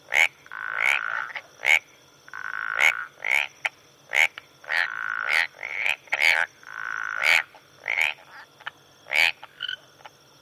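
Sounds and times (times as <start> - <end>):
tree and marsh frogs calling in tropical rain forest: 0.0 - 10.4.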